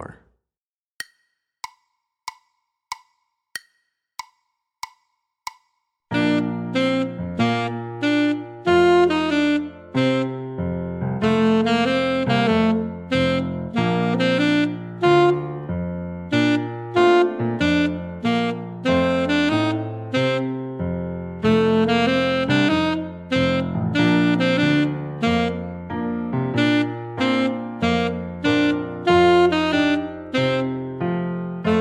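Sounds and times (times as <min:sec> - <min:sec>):
alto saxophone etude: 0:06.1 - 0:15.7, 0:16.3 - 0:20.8, 0:21.4 - 0:25.9, 0:26.6 - 0:31.7.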